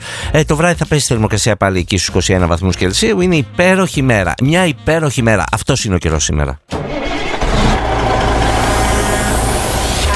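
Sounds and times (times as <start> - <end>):
speech: 0.3 - 7.1
car engine cranking and catching: 6.7 - 10.1.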